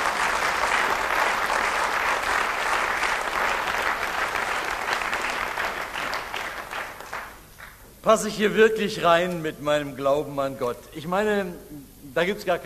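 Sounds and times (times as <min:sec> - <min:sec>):
audience applause: 0:00.0 - 0:07.8
speech: 0:08.1 - 0:12.6.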